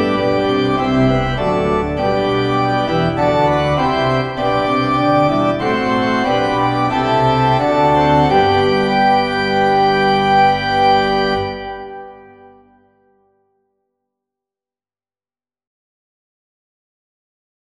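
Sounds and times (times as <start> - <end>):
organ playing: 0.0 - 13.0.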